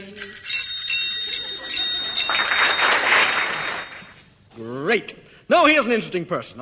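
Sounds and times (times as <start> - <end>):
bicycle bells playing a tune: 0.2 - 4.2
speech: 5.0 - 6.6.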